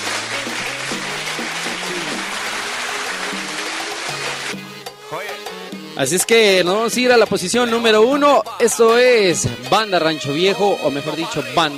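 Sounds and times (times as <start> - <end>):
steady dense applause from a crowd: 0.0 - 4.7
speech: 6.0 - 11.7.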